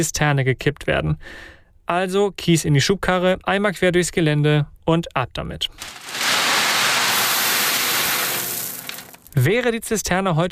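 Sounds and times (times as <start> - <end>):
speech: 0.0 - 6.3, 9.4 - 10.5
rain pattering down: 5.8 - 9.5.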